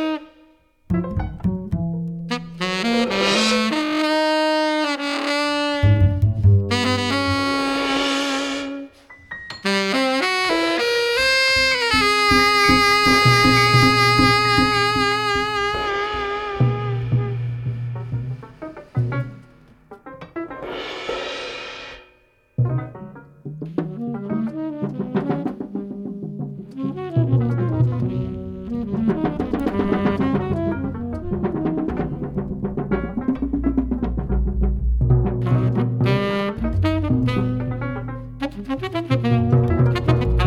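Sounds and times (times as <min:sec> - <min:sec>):
jazz saxophone: 0:00.0 - 0:00.7, 0:02.3 - 0:19.6, 0:23.9 - 0:26.0, 0:26.6 - 0:33.9, 0:35.4 - 0:40.4
jazz piano: 0:00.0 - 0:21.0, 0:22.6 - 0:40.4
jazz double bass: 0:00.9 - 0:03.8, 0:05.8 - 0:08.3, 0:11.6 - 0:19.5, 0:24.9 - 0:40.4
jazz drums: 0:00.9 - 0:04.1, 0:05.2 - 0:40.4.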